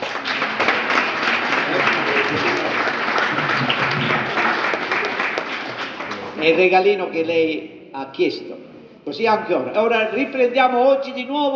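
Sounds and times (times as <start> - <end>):
audience applause: 0.0 - 6.4
speech: 6.4 - 11.5.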